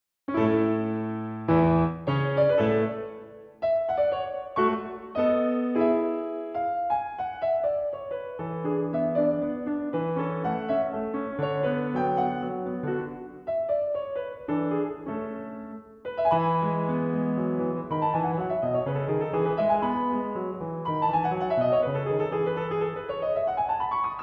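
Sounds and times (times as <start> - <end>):
piano sonata minuet: 0.3 - 24.2.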